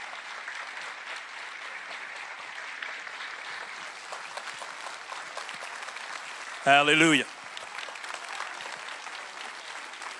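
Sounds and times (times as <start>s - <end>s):
audience applauding: 0.0s - 10.1s
speech: 6.6s - 7.3s.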